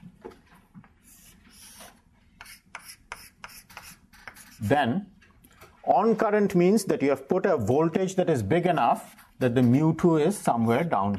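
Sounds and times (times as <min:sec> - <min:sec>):
hand-drawing strokes sketching a diagram in a physics lecture: 0:01.0 - 0:04.7
speech: 0:04.6 - 0:05.1, 0:05.9 - 0:11.1.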